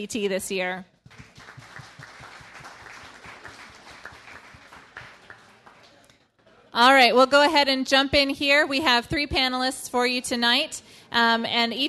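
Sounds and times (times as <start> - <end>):
speech: 0.0 - 1.3, 6.8 - 11.8
crowd applauding: 1.1 - 6.1.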